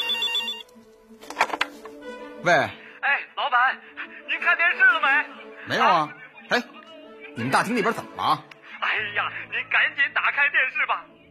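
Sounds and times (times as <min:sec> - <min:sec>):
telephone ringing: 0:00.0 - 0:00.7
speech: 0:02.4 - 0:02.8, 0:03.5 - 0:06.8, 0:07.4 - 0:11.2.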